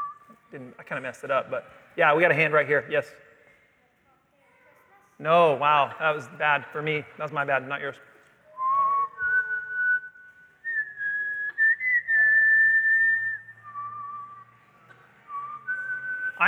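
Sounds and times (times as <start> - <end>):
person whistling a slow movie theme melody: 0.0 - 0.4, 8.5 - 14.6, 15.3 - 16.4
speech: 0.5 - 3.3, 5.2 - 8.1.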